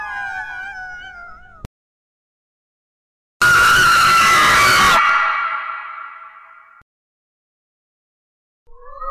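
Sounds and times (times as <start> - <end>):
scary horror sounds: 3.4 - 6.8.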